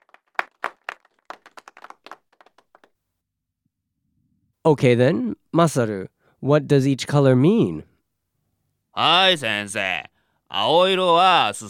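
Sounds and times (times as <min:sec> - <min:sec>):
classroom round of applause: 0:00.0 - 0:02.9
speech: 0:04.6 - 0:07.9, 0:09.0 - 0:11.6.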